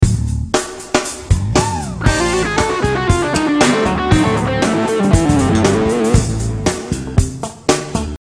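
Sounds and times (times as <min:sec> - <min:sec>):
musical lick: 0:01.0 - 0:07.6.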